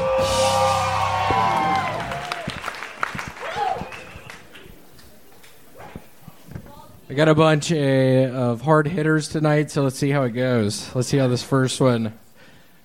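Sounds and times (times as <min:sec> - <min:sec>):
audience applauding and cheering: 0:00.0 - 0:04.8
speech: 0:07.2 - 0:12.2.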